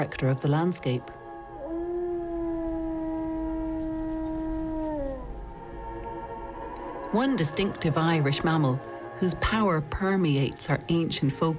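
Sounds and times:
speech: 0:00.0 - 0:01.2, 0:07.1 - 0:11.5
wolf howling: 0:01.2 - 0:06.8.

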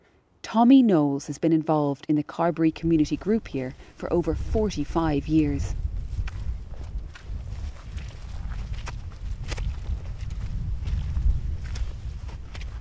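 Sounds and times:
speech: 0:00.5 - 0:05.9
squelchy footsteps on a turf bog: 0:02.8 - 0:12.7.

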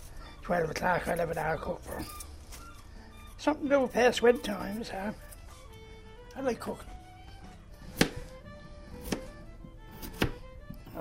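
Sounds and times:
speech: 0:00.5 - 0:02.3, 0:03.4 - 0:05.3, 0:06.4 - 0:06.9
knife chopping potatoes: 0:07.4 - 0:10.9.

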